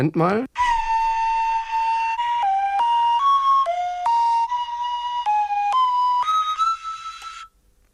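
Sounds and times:
speech: 0:00.0 - 0:00.6
nose flute playing a Christmas tune: 0:00.6 - 0:07.6.

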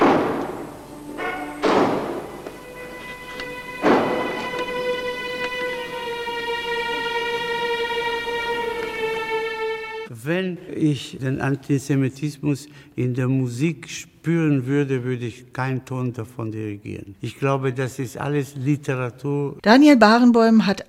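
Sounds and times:
doors slamming as audience leaves: 0:00.0 - 0:05.9
sustained orchestral chord: 0:00.0 - 0:10.1
speech: 0:10.3 - 0:20.8.

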